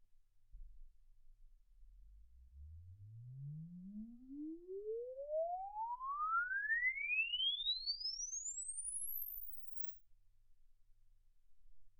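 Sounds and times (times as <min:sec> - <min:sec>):
exponential sine sweep from 10 Hz to 24 kHz: 0:02.2 - 0:09.9.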